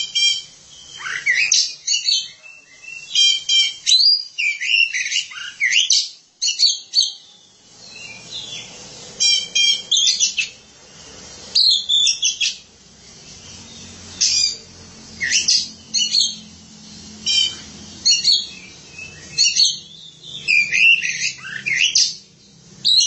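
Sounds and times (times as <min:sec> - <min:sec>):
Oriental magpie-robin singing: 0:00.0 - 0:10.6, 0:11.5 - 0:12.7, 0:13.3 - 0:16.6, 0:17.2 - 0:23.0
steady low hum: 0:07.4 - 0:22.9.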